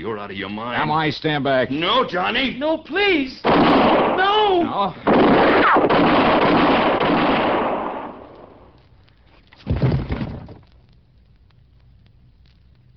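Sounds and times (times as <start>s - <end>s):
speech: 0.0s - 6.6s
gunshots: 3.4s - 8.7s.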